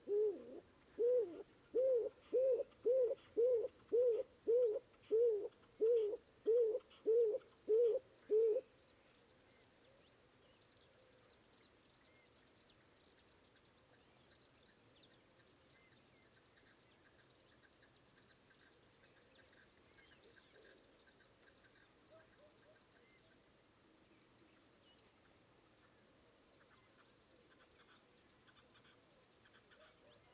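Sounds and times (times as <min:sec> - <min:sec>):
stock dove Columba oenas calling: 0:00.0 - 0:08.6.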